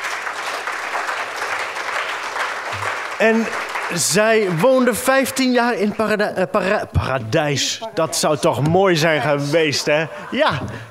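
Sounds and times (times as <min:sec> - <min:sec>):
audience applause: 0:00.0 - 0:05.8
speech: 0:03.2 - 0:10.8.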